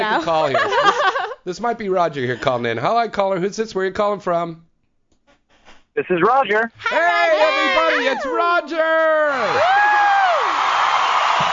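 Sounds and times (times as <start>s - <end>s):
speech: 0.0s - 4.6s, 6.0s - 10.0s
laughter: 0.1s - 1.4s
crowd audience cheering reaction: 6.8s - 11.5s.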